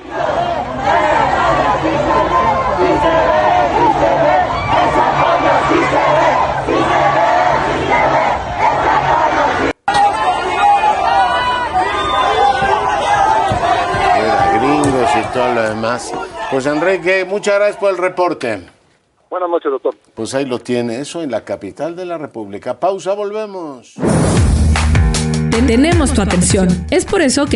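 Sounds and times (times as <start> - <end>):
crowd shouting: 0.0 - 18.2
speech: 15.9 - 24.6, 25.6 - 27.5.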